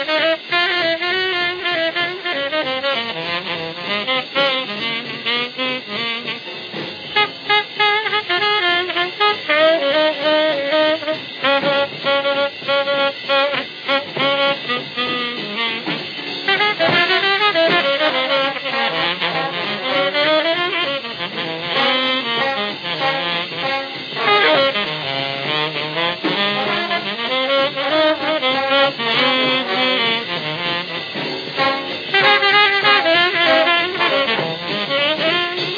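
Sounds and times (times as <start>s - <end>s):
jazz orchestra playing live: 0.0s - 35.7s.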